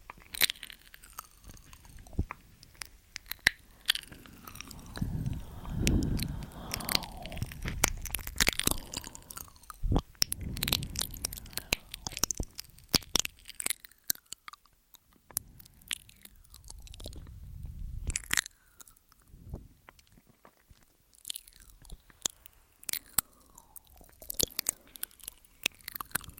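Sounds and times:
wet crunchy chewing: 0:00.0 - 0:26.3
lip smacks: 0:00.1 - 0:17.4, 0:21.2 - 0:26.3
low rumble: 0:04.1 - 0:13.4, 0:15.4 - 0:18.2.

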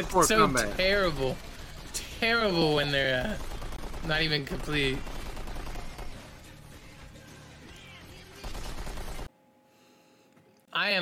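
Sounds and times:
speech: 0:00.0 - 0:01.6, 0:02.2 - 0:05.1, 0:10.8 - 0:10.9
rapid gunfire from an unfinished video game: 0:00.9 - 0:07.3, 0:08.0 - 0:09.3.

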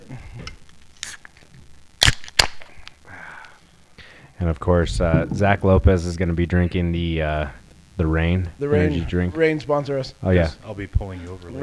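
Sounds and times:
drink can being cracked open: 0:01.0 - 0:01.4, 0:02.0 - 0:03.6
speech: 0:04.4 - 0:11.6.

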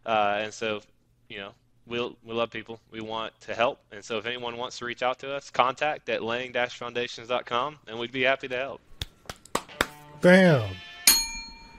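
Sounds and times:
speech: 0:00.1 - 0:08.9, 0:10.2 - 0:10.9
bell ringing: 0:11.1 - 0:11.7.

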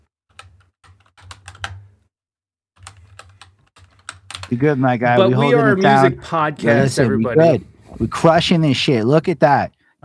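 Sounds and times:
typing on a computer keyboard: 0:00.3 - 0:01.9, 0:02.8 - 0:04.5
speech: 0:04.5 - 0:10.0.

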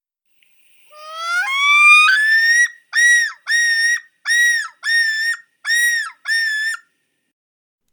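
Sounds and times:
common loon call: 0:00.9 - 0:06.8.

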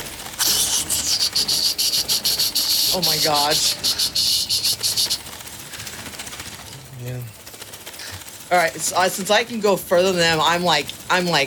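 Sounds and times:
loud shrieking skittering creature chittering: 0:00.4 - 0:05.2
speech: 0:02.9 - 0:04.6, 0:07.0 - 0:07.4, 0:08.5 - 0:11.4.

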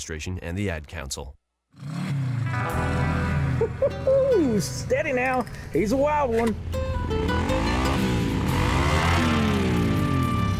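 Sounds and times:
speech: 0:00.0 - 0:02.0, 0:03.7 - 0:08.1
motorcycle engine revving: 0:01.7 - 0:03.7, 0:07.2 - 0:10.5.

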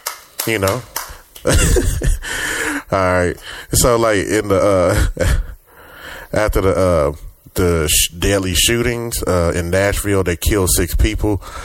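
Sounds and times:
clapping: 0:00.0 - 0:01.2
speech: 0:00.4 - 0:05.5, 0:06.3 - 0:11.6
laughter: 0:01.5 - 0:02.9.

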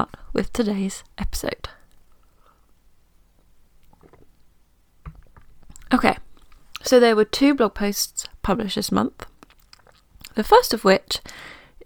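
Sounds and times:
speech: 0:00.0 - 0:01.8, 0:05.9 - 0:06.2, 0:06.9 - 0:09.3, 0:10.4 - 0:11.8
person sipping water: 0:03.8 - 0:04.5, 0:05.1 - 0:06.8.

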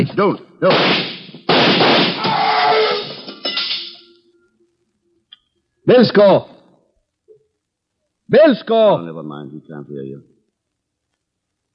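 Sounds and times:
speech: 0:00.0 - 0:01.1, 0:05.9 - 0:06.5, 0:08.3 - 0:10.3
gunshots fired through a door: 0:00.6 - 0:02.5.

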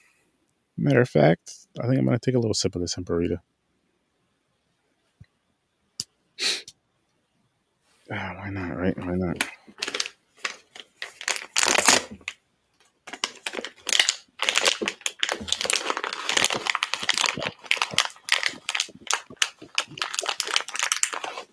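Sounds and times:
speech: 0:00.8 - 0:03.6, 0:08.1 - 0:09.6
crinkly plastic snack bag being wrestled open: 0:09.4 - 0:12.4, 0:13.0 - 0:21.5.

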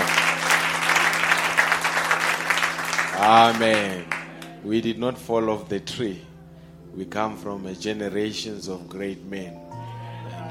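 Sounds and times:
round of applause: 0:00.0 - 0:04.6
speech: 0:03.2 - 0:06.3, 0:07.0 - 0:09.7.

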